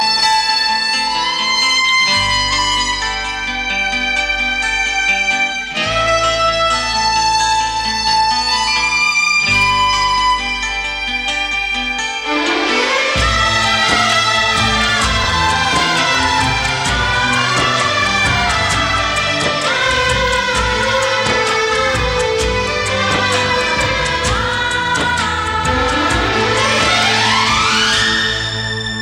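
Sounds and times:
sad music: 0:00.0 - 0:29.0.

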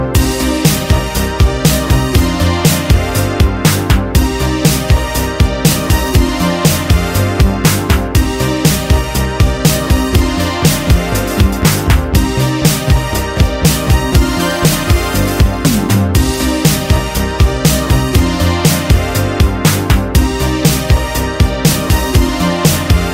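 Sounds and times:
vaporwave music: 0:00.0 - 0:23.1.

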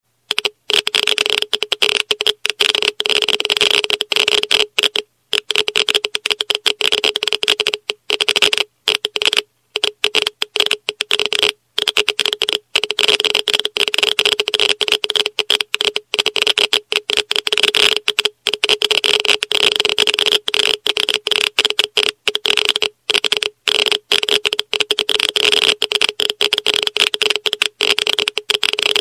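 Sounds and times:
Geiger counter SMS tone: 0:00.3 - 0:29.0.

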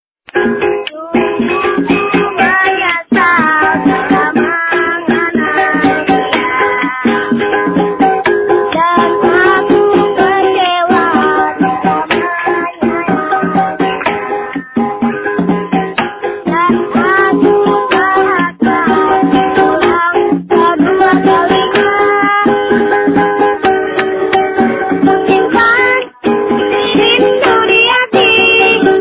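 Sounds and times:
street punk rock music: 0:00.3 - 0:29.0.

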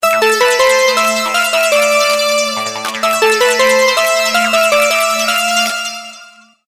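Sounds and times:
SMS melody: 0:00.0 - 0:06.4.

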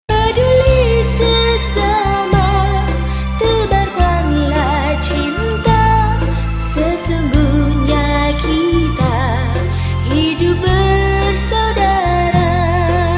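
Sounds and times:
melody: 0:00.2 - 0:12.2.

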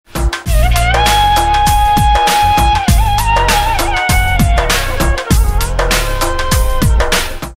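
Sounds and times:
flute: 0:00.5 - 0:07.3.

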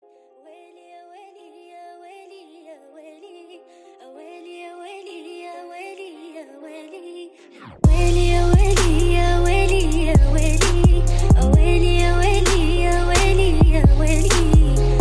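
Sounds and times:
trap remix: 0:07.8 - 0:15.0.

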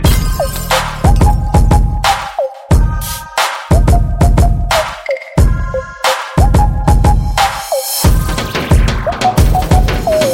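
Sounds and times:
beats: 0:00.0 - 0:10.3.

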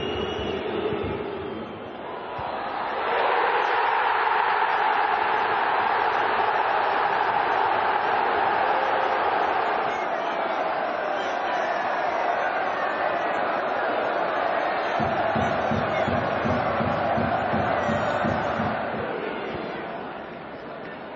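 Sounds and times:
crowd chanting: 0:00.0 - 0:21.1.

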